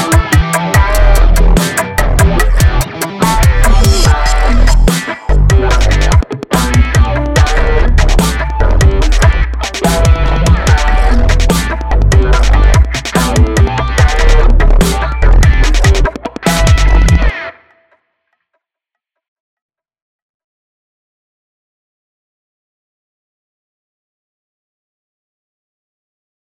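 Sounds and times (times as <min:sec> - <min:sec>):
funkstep music: 0:00.0 - 0:17.5.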